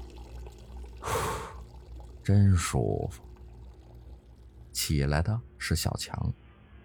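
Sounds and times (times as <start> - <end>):
running water from a tap: 0.0 - 5.0
speech: 2.3 - 3.3, 4.9 - 6.4.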